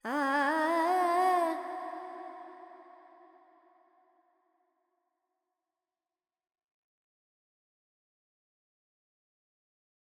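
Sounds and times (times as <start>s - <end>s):
Carnatic female singer singing alap: 0.0s - 2.9s.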